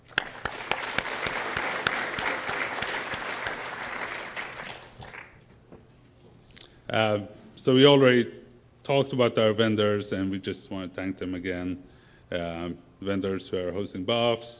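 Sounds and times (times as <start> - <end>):
audience applause: 0.0 - 5.4
speech: 6.9 - 14.5.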